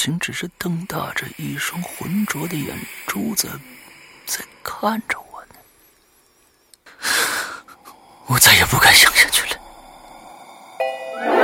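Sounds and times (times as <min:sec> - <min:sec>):
speech: 0:00.0 - 0:05.2, 0:08.3 - 0:09.6
elevator arrival bell chime: 0:10.8 - 0:11.4.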